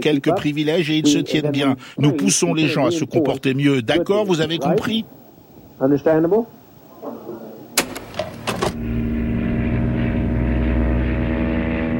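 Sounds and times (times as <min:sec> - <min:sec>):
speech: 0:00.0 - 0:05.2, 0:05.8 - 0:07.2
small propeller plane taking off from Georgetown: 0:07.9 - 0:11.9.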